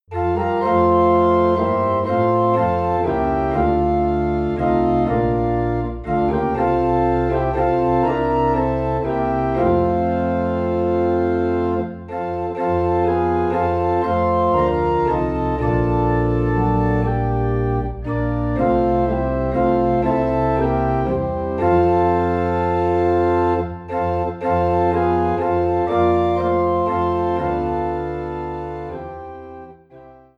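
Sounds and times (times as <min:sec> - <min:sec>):
organ playing in F: 0:00.0 - 0:30.3.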